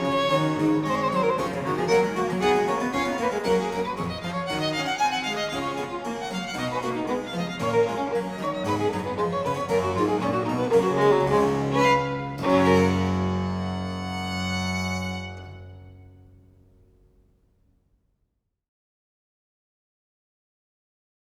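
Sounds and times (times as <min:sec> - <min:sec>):
violin and basso continuo sonata: 0:00.0 - 0:16.4.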